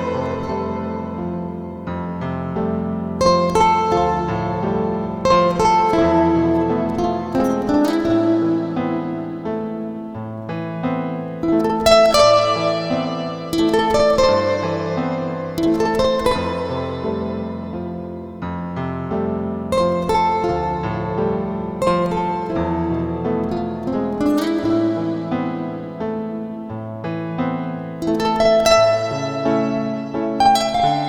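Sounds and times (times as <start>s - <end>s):
slow instrumental waltz: 0.0s - 31.0s.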